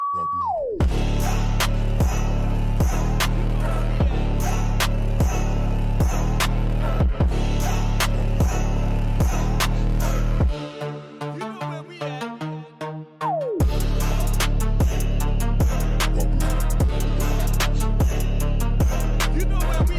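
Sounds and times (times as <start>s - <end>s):
trap pulse beat: 0.0s - 19.9s.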